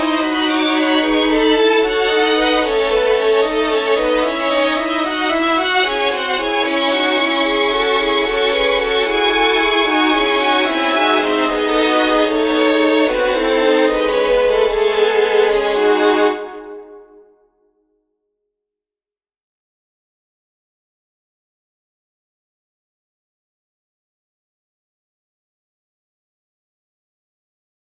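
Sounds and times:
quartet for violins: 0.0s - 17.1s.

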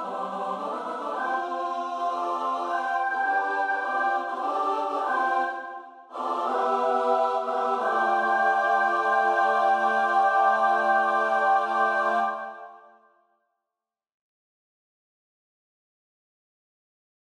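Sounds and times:
chamber music: 0.0s - 13.0s.

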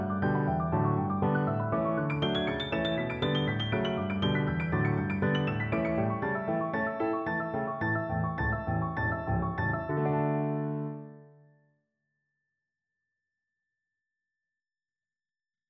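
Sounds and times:
prelude in D major: 0.0s - 11.3s.

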